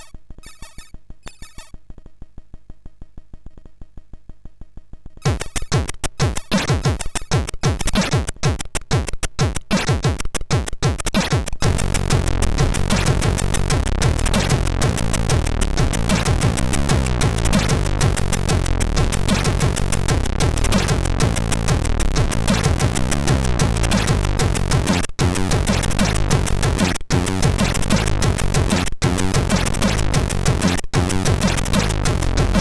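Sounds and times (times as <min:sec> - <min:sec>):
SID MOS6581R3 chip sound: 0:00.0 - 0:01.8, 0:05.2 - 0:32.5.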